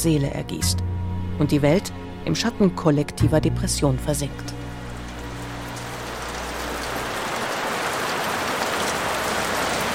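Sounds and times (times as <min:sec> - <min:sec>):
speech: 0:00.0 - 0:04.6
rain drops hitting a window: 0:04.5 - 0:09.9.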